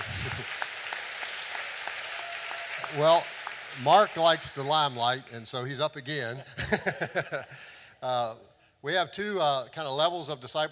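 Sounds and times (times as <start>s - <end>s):
audience clapping: 0.0s - 5.0s
speech: 2.9s - 10.7s
laughter: 6.3s - 7.7s.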